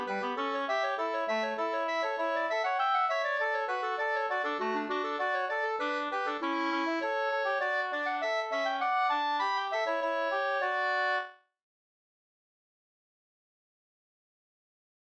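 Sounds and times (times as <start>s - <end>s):
slangpolska folk dance tune: 0.0s - 11.3s.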